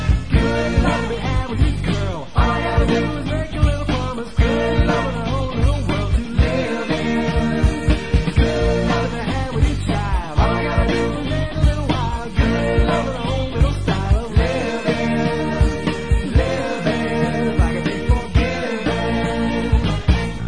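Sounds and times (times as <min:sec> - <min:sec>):
backing vocals: 0:00.2 - 0:20.4.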